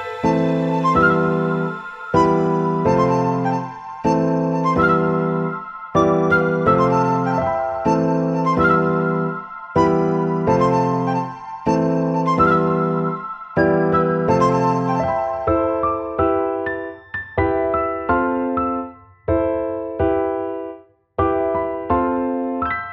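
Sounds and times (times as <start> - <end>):
strings: 0.0 - 4.1
flute: 0.0 - 18.9
piano: 0.0 - 22.9.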